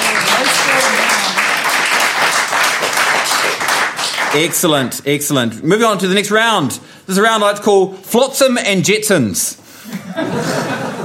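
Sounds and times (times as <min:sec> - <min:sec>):
audience applause: 0:00.0 - 0:04.6
speech: 0:04.3 - 0:10.9
laughter: 0:09.8 - 0:11.0.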